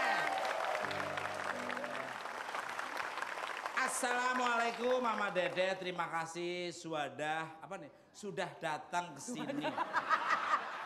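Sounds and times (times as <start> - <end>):
audience applause: 0.0 - 5.9
speech: 4.0 - 10.0
laughter: 9.3 - 10.8.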